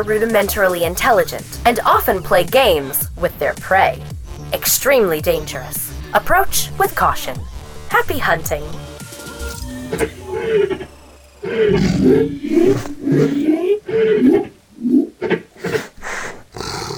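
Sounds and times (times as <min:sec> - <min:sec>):
speech: 0:00.0 - 0:08.9, 0:09.9 - 0:15.8
big cats roaring: 0:10.0 - 0:15.9, 0:16.5 - 0:16.9.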